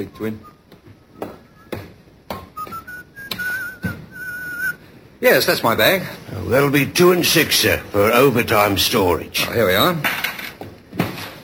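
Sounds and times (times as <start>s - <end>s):
speech: 0.0s - 0.5s, 5.2s - 10.2s
man whistling: 0.0s - 4.9s.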